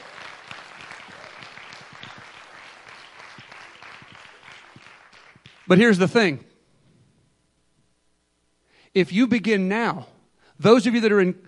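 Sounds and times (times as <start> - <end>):
audience applause: 0.0 - 5.7
speech: 5.7 - 6.5, 9.0 - 11.4.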